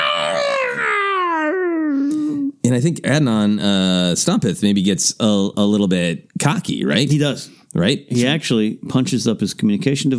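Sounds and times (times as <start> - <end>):
person imitating a mighty roar: 0.0 - 2.4
speech: 2.6 - 10.1.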